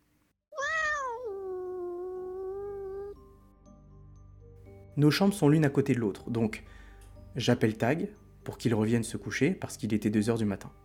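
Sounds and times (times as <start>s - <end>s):
cat meowing loudly: 0.5s - 3.2s
speech: 5.0s - 6.8s, 7.4s - 10.8s.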